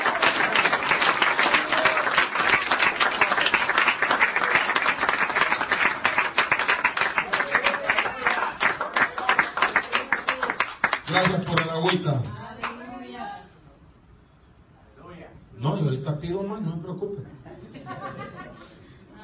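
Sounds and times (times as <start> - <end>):
church congregation clapping: 0.0 - 12.8
speech: 11.1 - 12.4, 16.1 - 18.3
laughter: 17.3 - 18.8.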